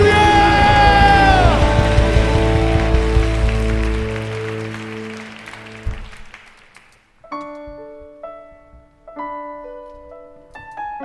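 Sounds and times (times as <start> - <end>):
audience applauding in church: 0.0 - 7.2.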